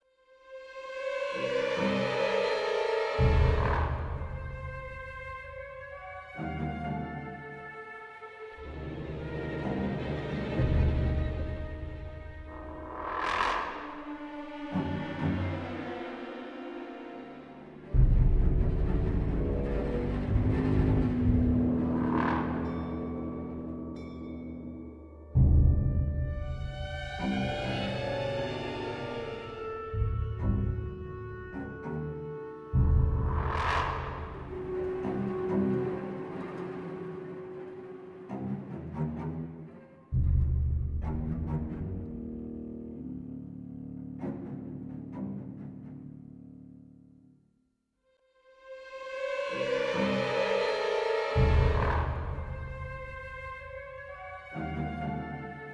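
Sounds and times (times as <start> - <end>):
suspense music: 0.4 - 47.4, 48.6 - 55.7.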